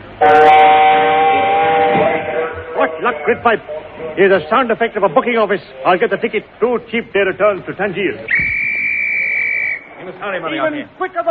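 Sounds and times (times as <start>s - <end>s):
speech: 0.2s - 0.5s, 3.0s - 8.6s, 10.0s - 11.2s
loud sustained train whistle: 0.2s - 3.3s, 8.3s - 9.9s.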